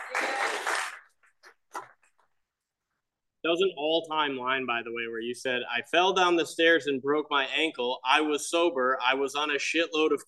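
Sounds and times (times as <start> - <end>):
applause: 0.0 - 1.4
speech: 3.5 - 10.2.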